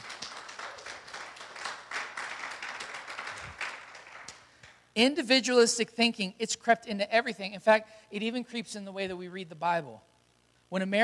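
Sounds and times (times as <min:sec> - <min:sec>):
audience clapping: 0:00.0 - 0:04.8
speech: 0:05.0 - 0:10.1, 0:10.7 - 0:11.0.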